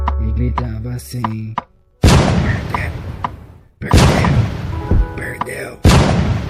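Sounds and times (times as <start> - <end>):
speech: 0.4 - 3.1
pistols fired by two hooded men: 2.0 - 2.8, 3.8 - 4.8, 5.8 - 6.4.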